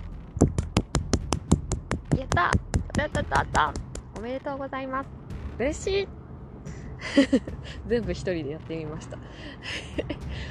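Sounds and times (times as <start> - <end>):
hand clapping: 0.4 - 4.3
speech: 2.2 - 6.2, 7.0 - 10.4
laughter: 7.0 - 8.0, 9.0 - 10.4.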